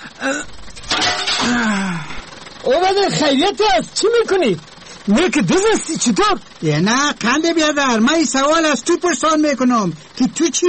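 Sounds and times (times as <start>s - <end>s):
door glass being smashed: 0.6s - 1.8s
speech: 2.7s - 10.6s.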